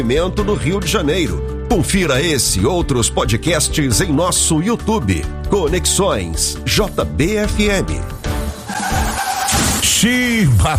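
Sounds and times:
speech: 0:00.0 - 0:08.3, 0:09.8 - 0:10.7
car crashing: 0:08.3 - 0:10.1
car tires squealing in a long skid: 0:08.5 - 0:09.9.

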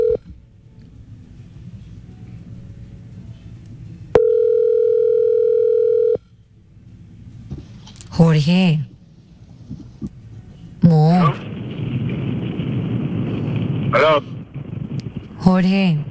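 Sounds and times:
telephone dial tone while calling: 0:00.0 - 0:00.2, 0:04.2 - 0:06.2
low rumbling noise: 0:00.0 - 0:16.1
speech: 0:08.4 - 0:08.9, 0:15.5 - 0:16.1.

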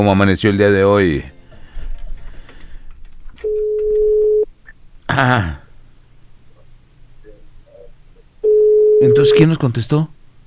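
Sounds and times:
speech: 0:00.0 - 0:01.4, 0:05.1 - 0:05.6, 0:09.0 - 0:10.2
telephone tone as a number is dialled: 0:03.4 - 0:04.5, 0:08.4 - 0:09.5
low murmuring noise: 0:04.6 - 0:08.4.

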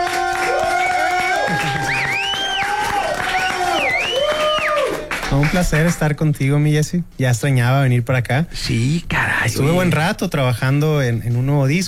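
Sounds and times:
studio audience cheering and whooping: 0:00.0 - 0:05.1
studio audience clapping: 0:00.0 - 0:06.2
speech: 0:05.4 - 0:11.8.

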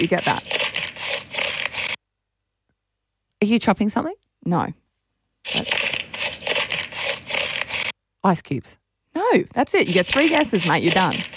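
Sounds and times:
speech: 0:00.0 - 0:00.6, 0:03.4 - 0:04.8, 0:05.5 - 0:05.8, 0:08.2 - 0:11.3
pepper cracking in a grinder: 0:00.0 - 0:02.0, 0:05.5 - 0:07.9, 0:09.8 - 0:11.3.

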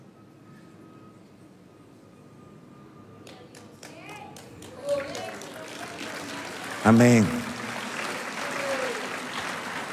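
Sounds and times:
audience applauding: 0:04.6 - 0:09.9
speech: 0:06.9 - 0:07.4.

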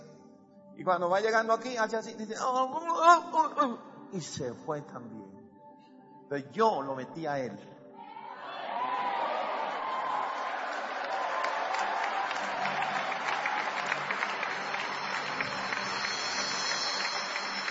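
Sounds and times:
speech: 0:00.8 - 0:05.4, 0:06.3 - 0:07.8
audience applauding: 0:08.5 - 0:17.7.

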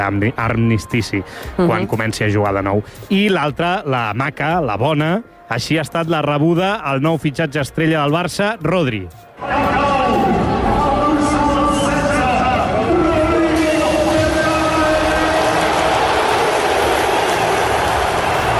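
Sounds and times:
speech: 0:00.0 - 0:10.3
stadium ovation crowd cheering: 0:09.4 - 0:18.5.

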